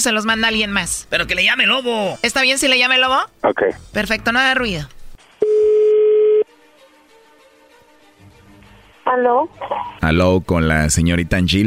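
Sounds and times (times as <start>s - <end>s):
speech: 0.0s - 5.0s, 9.1s - 11.6s
telephone ringing tone: 5.4s - 6.5s.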